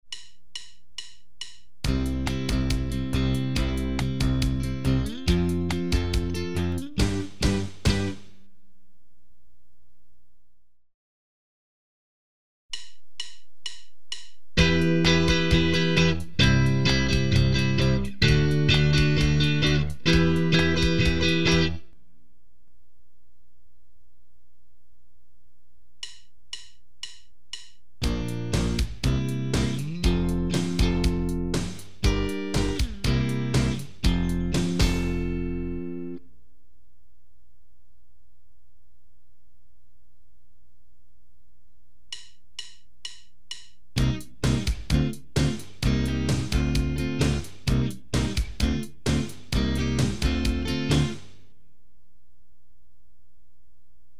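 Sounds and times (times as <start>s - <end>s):
guitar chord progressions using A-based barre chords: 1.9s - 8.3s, 14.6s - 21.9s, 28.0s - 36.3s, 44.0s - 51.3s.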